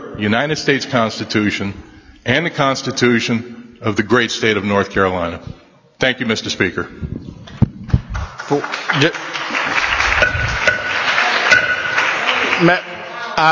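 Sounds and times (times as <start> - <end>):
speech: 0.2 - 7.3, 8.5 - 9.3, 12.6 - 13.4
applause and cheering from the gallery: 7.8 - 13.4.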